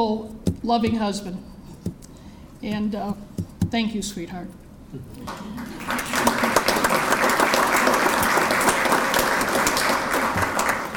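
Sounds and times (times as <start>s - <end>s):
speech: 0.0s - 1.6s, 2.6s - 6.4s
audience applause: 5.3s - 10.9s.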